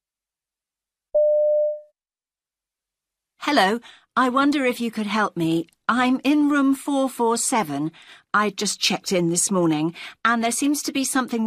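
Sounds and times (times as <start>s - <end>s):
telephone call tone as a woman rings her hotel's reception desk: 1.2s - 1.9s
speech: 3.5s - 11.4s.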